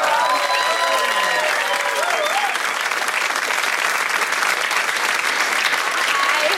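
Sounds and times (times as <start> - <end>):
audience applause welcoming a guest on stage: 0.0 - 6.5.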